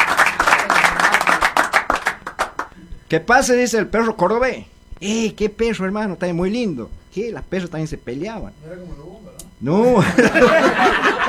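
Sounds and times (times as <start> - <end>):
small group of people clapping: 0.0 - 2.8
speech: 3.1 - 11.2
laughter: 9.8 - 11.2.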